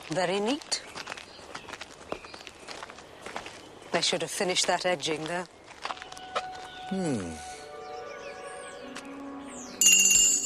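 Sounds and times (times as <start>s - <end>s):
footsteps of people walking into a garden: 0.0s - 6.9s
speech: 0.1s - 0.8s, 3.9s - 5.6s, 6.9s - 7.5s.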